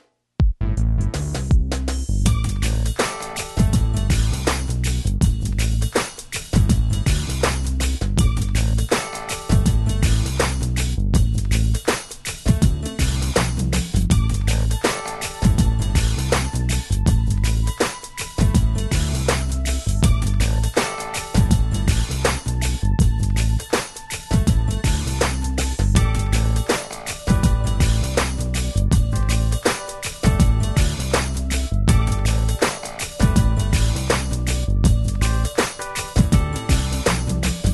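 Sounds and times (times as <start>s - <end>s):
contemporary urban pop music: 0.5s - 37.7s.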